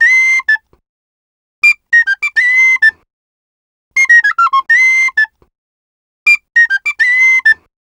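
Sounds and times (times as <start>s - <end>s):
penny whistle in F: 0.0s - 0.7s, 1.6s - 3.0s, 4.0s - 5.4s, 6.3s - 7.6s.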